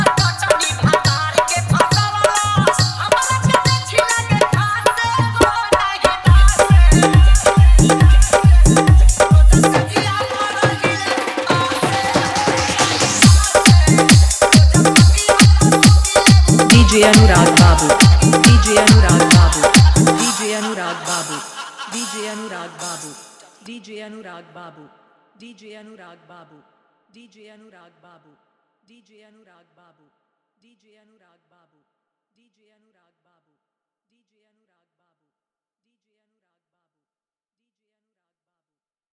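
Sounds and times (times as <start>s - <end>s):
hard dholki drum mix: 0.0s - 21.5s
laughter: 16.8s - 23.0s.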